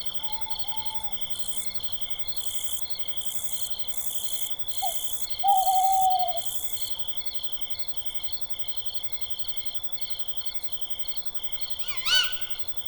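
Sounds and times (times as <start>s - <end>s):
owl in a forest: 0.2s - 1.3s, 4.8s - 6.6s, 11.8s - 12.7s.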